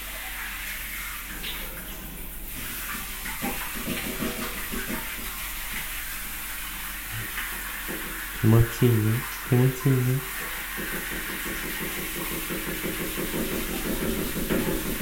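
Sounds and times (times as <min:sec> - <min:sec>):
shower water spraying: 0:00.0 - 0:15.0
speech: 0:08.4 - 0:10.4, 0:11.0 - 0:13.8.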